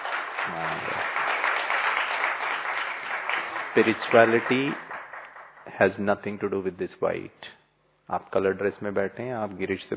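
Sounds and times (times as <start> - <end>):
audience clapping: 0.0 - 6.3
speech: 0.5 - 1.2, 3.7 - 4.8, 5.7 - 9.9.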